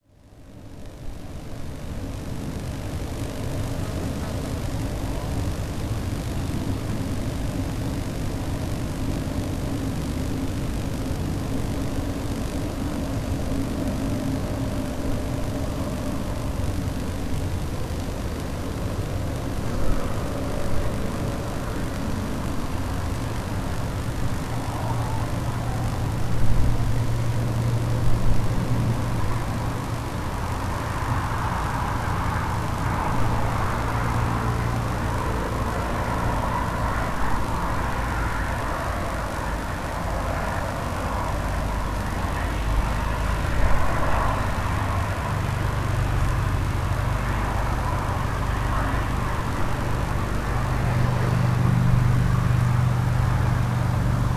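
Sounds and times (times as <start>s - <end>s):
high voltage power line: 0.0s - 54.3s.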